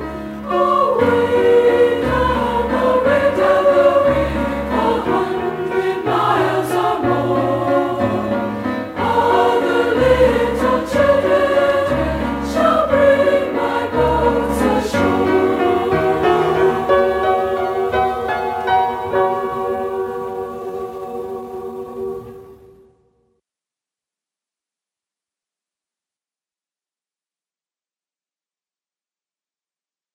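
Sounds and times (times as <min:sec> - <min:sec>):
women's chorale singing: 0:00.0 - 0:23.0.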